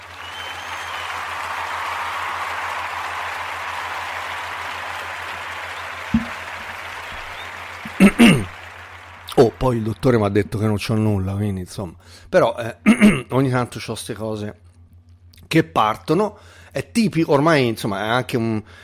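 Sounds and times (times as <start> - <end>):
small applause sound effect: 0.0 - 11.2
sharp knocks: 6.1 - 6.5
speech: 8.1 - 8.5, 9.4 - 14.6, 15.5 - 18.8.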